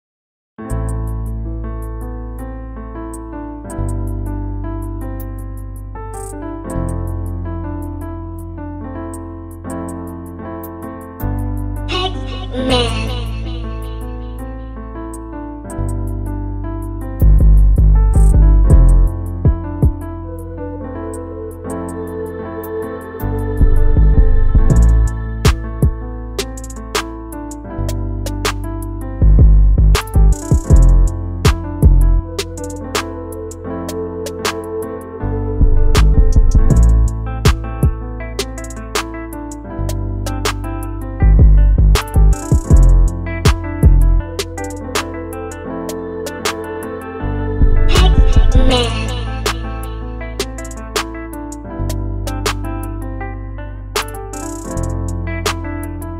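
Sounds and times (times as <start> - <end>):
instrumental music: 0.7 - 56.1.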